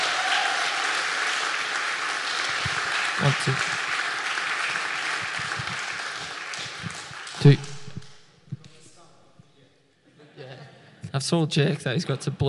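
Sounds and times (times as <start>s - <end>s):
audience applause: 0.0s - 8.1s
speech: 3.2s - 3.7s, 7.4s - 7.7s, 11.2s - 12.4s.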